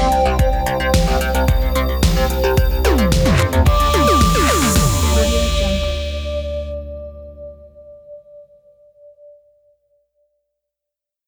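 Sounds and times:
80s futuristic logo jingle: 0.2 - 6.6.

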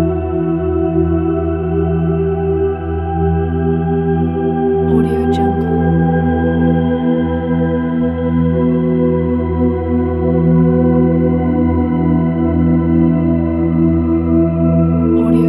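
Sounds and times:
spiritual soundscape: 0.0 - 15.4.

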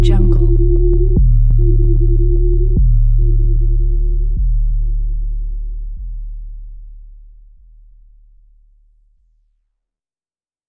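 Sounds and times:
dark techno background music: 0.0 - 6.2.

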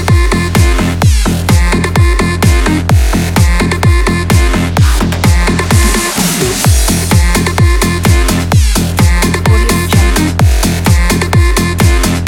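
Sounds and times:
electro dubstep music: 0.0 - 12.2.

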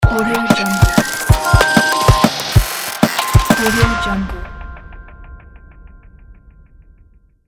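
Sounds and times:
technology glitch logo sound: 0.6 - 4.2.

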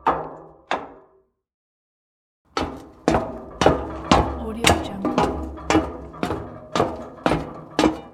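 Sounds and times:
footsteps on metal stairs: 2.5 - 8.1.

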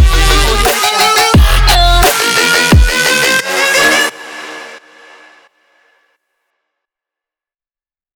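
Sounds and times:
sport dubstep music: 0.0 - 5.4.

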